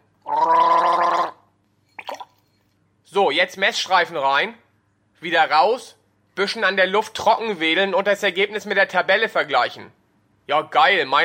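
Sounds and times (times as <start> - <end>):
gargling water: 0.2 - 2.4
speech: 3.2 - 4.6, 5.2 - 11.2.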